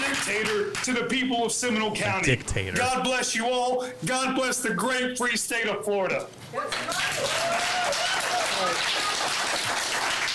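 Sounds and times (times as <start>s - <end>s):
speech: 0.3s - 9.1s
raised voice: 2.0s - 3.0s
crowd applauding: 6.7s - 10.3s.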